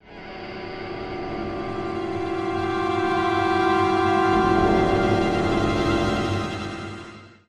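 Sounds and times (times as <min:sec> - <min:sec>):
string swell sting: 0:01.6 - 0:07.4.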